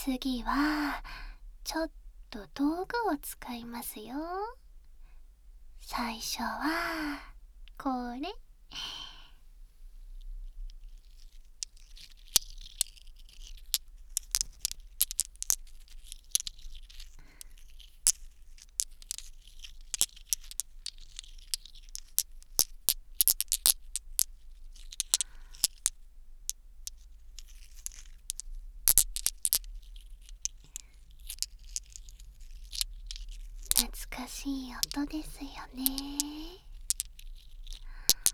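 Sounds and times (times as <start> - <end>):
speech: 0.1 - 4.6, 5.8 - 8.9
glass marbles rattling and rubbing together: 10.8 - 38.3.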